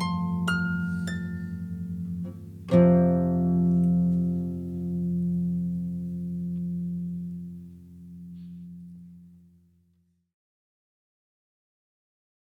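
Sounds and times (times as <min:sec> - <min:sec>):
harp in F: 0:00.0 - 0:09.4.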